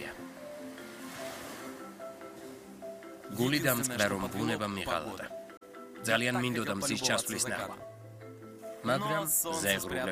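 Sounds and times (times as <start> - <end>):
ocean waves washing onto the beach of a remote island's southwest coast: 0.7 - 1.9
speech: 3.3 - 5.4, 6.0 - 7.9, 8.8 - 10.1.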